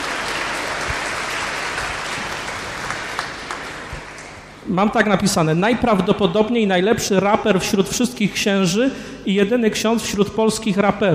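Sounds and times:
audience applause: 0.0s - 4.5s
speech: 4.7s - 11.1s.

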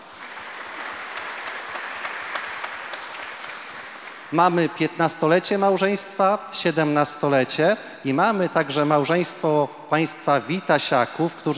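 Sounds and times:
crowd applauding: 0.0s - 4.8s
speech: 4.3s - 11.5s.

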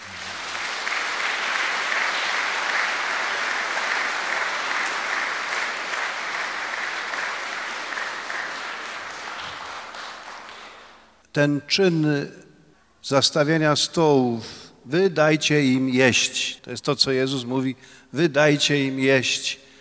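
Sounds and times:
audience applause: 0.0s - 11.2s
speech: 11.4s - 12.4s, 13.0s - 19.6s.

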